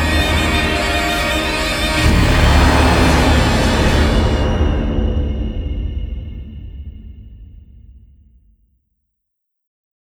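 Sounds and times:
rising sound: 0.0s - 6.6s.

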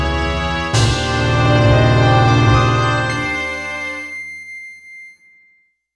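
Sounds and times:
boss defeated game music: 0.1s - 4.1s.

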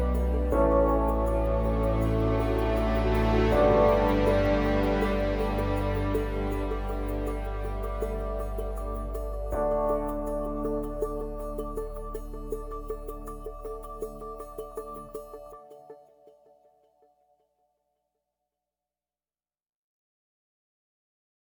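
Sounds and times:
orchestral post race music at 80bpm: 0.0s - 12.5s.

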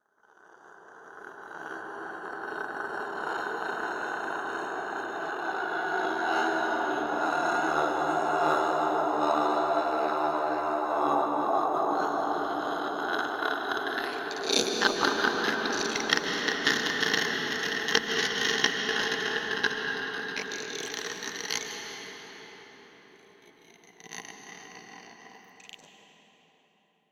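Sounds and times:
3D ambience in China: 1.7s - 21.1s.

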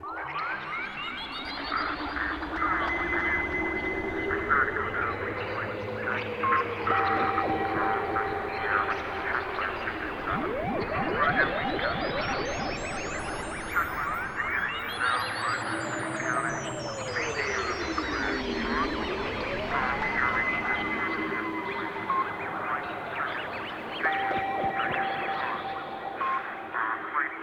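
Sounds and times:
space ambience sound effect: 0.0s - 27.4s.

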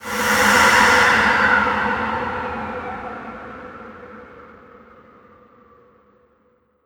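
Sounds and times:
dark wind sound: 0.0s - 6.1s.

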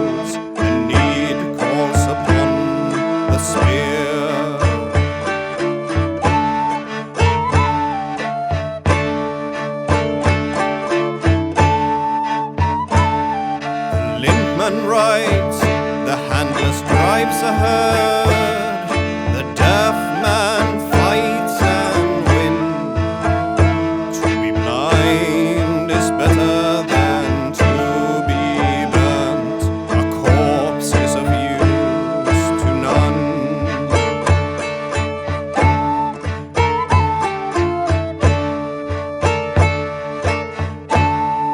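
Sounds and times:
vocals: 0.0s - 5.5s, 13.9s - 35.1s
flute: 0.0s - 41.5s
guitar: 0.0s - 41.5s
tagelharpa: 0.0s - 41.5s.

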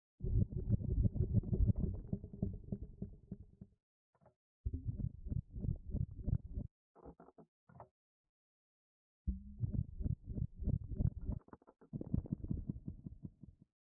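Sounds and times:
rumble: 0.2s - 3.7s, 4.7s - 6.7s, 9.3s - 11.4s.

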